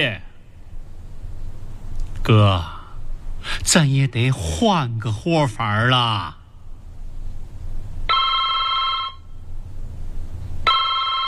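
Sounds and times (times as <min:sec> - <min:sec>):
speech: 0:00.0 - 0:00.2, 0:02.3 - 0:02.8, 0:03.4 - 0:06.4
telephone ringing: 0:08.1 - 0:09.2, 0:10.7 - 0:11.2.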